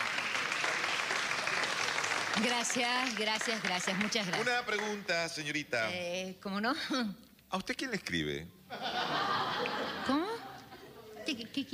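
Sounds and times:
audience applause: 0.0 - 5.1
speech: 2.4 - 10.2, 11.3 - 11.7
laughter: 8.7 - 11.2.

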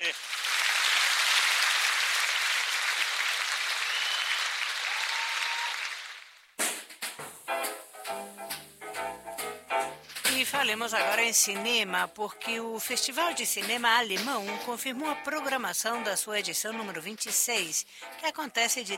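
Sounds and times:
audience applause: 0.0 - 6.6
speech: 10.5 - 18.9.

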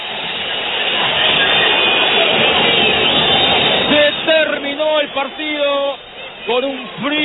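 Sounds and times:
football fans whistling in disapproval: 0.0 - 7.2
speech: 6.4 - 7.2.

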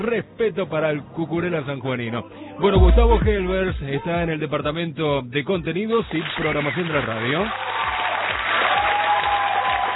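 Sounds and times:
speech: 0.0 - 7.9
applause from a studio audience on a sports radio show: 6.1 - 9.9.

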